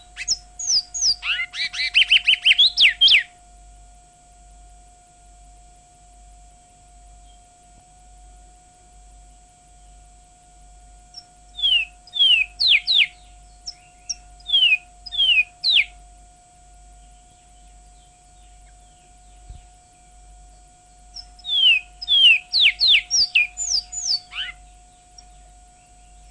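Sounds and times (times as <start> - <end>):
Surinamese twa-twa songbird singing: 0.0 - 3.4, 7.1 - 7.6, 11.1 - 16.1, 16.8 - 26.2.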